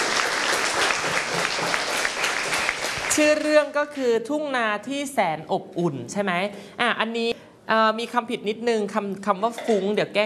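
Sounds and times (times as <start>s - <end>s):
audience applause: 0.0s - 3.3s
speech: 3.2s - 10.2s.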